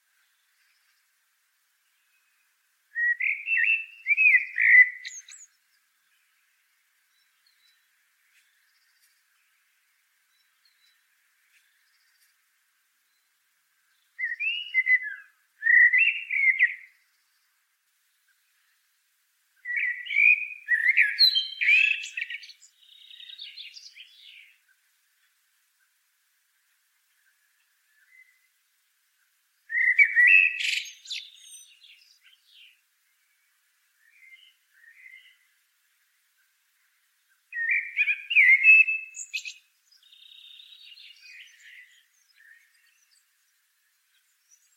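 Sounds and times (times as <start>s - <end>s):
common blackbird song: 1.9s - 6.5s, 10.3s - 12.3s, 13.9s - 18.9s, 19.6s - 24.8s, 29.6s - 35.6s, 36.8s - 44.7s.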